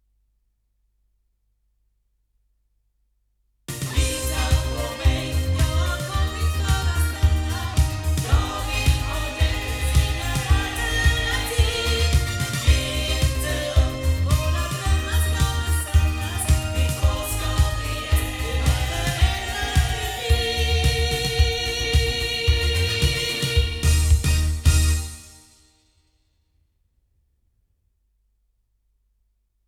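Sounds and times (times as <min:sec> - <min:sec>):
MT87S loudspeakers: 0:03.7 - 0:25.0.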